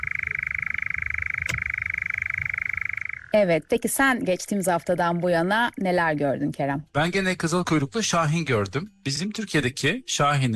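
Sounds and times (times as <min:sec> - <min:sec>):
European nightjar call: 0:00.0 - 0:03.4
speech: 0:03.4 - 0:10.5.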